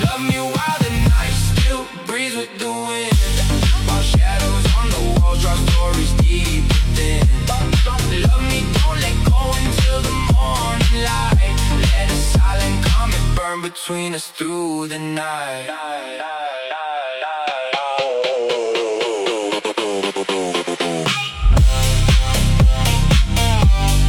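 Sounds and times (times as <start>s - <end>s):
phonk music: 0.0s - 14.3s, 15.0s - 24.0s.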